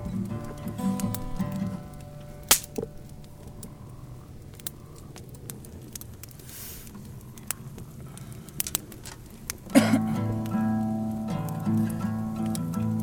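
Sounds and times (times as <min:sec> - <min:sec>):
guitar: 0:00.0 - 0:03.8, 0:09.7 - 0:13.0.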